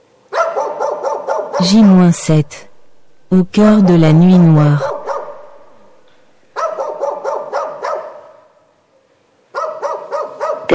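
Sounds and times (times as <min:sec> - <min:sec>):
wild dogs barking: 0:00.3 - 0:01.8, 0:04.7 - 0:05.9, 0:06.6 - 0:08.5, 0:09.5 - 0:10.7
speech: 0:01.6 - 0:02.7, 0:03.3 - 0:04.9.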